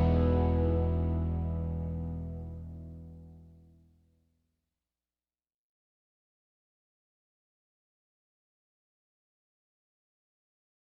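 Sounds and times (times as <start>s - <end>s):
instrumental music in E without guitar: 0.0s - 2.9s.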